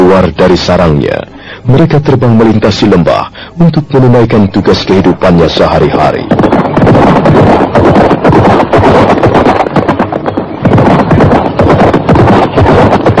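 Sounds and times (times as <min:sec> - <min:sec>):
speech: 0:00.2 - 0:07.4
two horses galloping across a meadow near Mount Lejar: 0:05.2 - 0:13.1.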